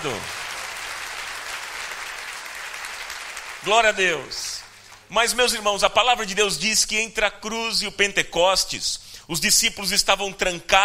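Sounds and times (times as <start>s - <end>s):
speech: 0.0s - 0.4s, 3.6s - 4.5s, 5.1s - 10.8s
church congregation applauding at a Portuguese-language evening worship service: 0.0s - 5.5s.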